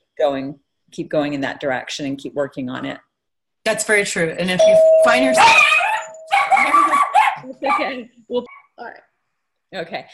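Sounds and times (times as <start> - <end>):
speech: 0.2 - 5.9, 7.5 - 9.1, 9.7 - 10.1
dog barking in high-pitched yappy bursts: 5.4 - 8.7.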